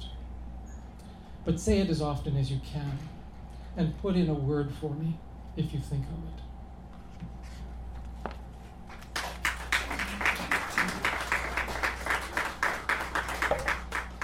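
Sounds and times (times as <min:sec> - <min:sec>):
speech: 0:01.5 - 0:03.2, 0:03.8 - 0:06.5
audience applause after a poem: 0:09.0 - 0:14.2.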